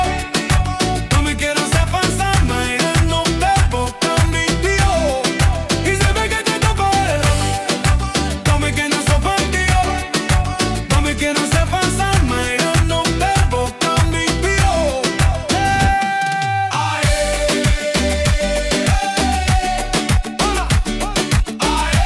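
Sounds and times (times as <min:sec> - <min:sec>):
energetic danceable reggaeton piano music: 0:00.0 - 0:22.0.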